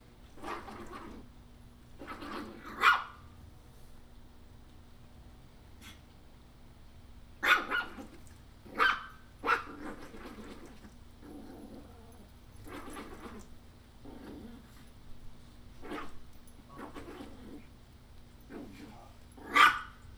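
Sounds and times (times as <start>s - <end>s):
puppy barking and snarling: 2.0s - 3.2s, 7.4s - 14.8s, 15.8s - 17.7s, 18.5s - 20.0s.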